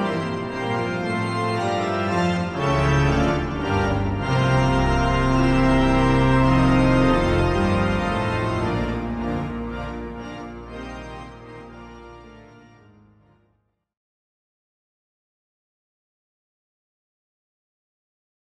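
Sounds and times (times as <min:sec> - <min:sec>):
grand choeur organ piece: 0:00.0 - 0:13.6.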